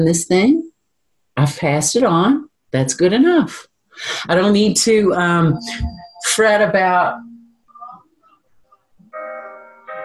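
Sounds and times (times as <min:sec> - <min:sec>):
speech: 0:00.0 - 0:00.6, 0:01.4 - 0:07.3
phone alarm going off: 0:05.2 - 0:07.9.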